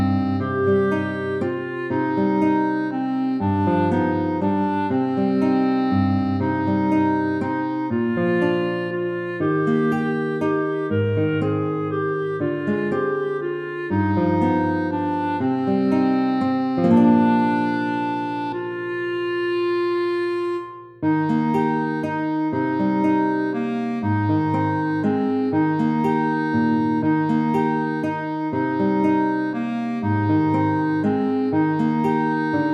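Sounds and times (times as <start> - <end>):
clarinet: 0.0 - 32.7
guitar: 0.0 - 32.7.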